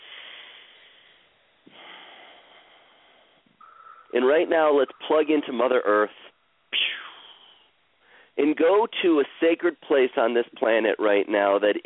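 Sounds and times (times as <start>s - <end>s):
deep healing breath: 0.0s - 3.6s, 6.9s - 8.4s
speech: 4.1s - 6.3s, 8.4s - 11.8s.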